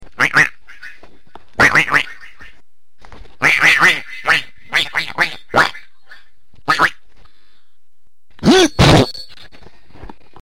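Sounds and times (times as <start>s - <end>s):
duck quacking: 0.2s - 1.0s, 1.6s - 2.6s, 3.4s - 7.0s.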